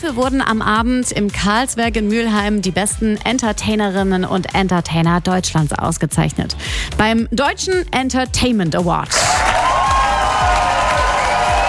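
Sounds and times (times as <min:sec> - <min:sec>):
speech: 0:00.0 - 0:09.4
audience applause at the German Entertainment Award at the Karlsberg in Mülheim: 0:09.1 - 0:11.6.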